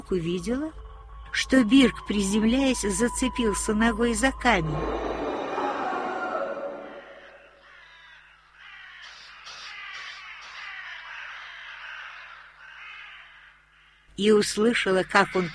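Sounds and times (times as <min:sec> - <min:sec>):
speech: 0:00.1 - 0:05.1, 0:14.2 - 0:15.5
crows cawing: 0:04.7 - 0:14.2, 0:14.8 - 0:15.5.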